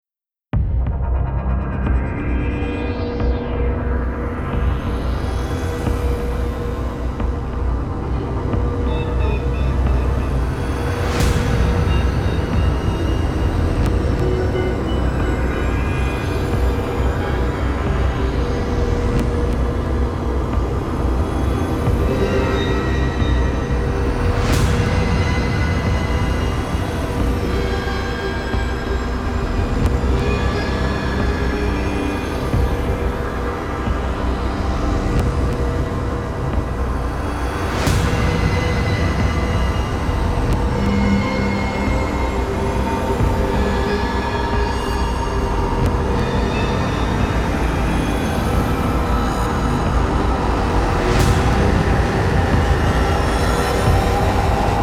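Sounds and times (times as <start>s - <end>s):
thick background sound: 0.6s - 54.8s.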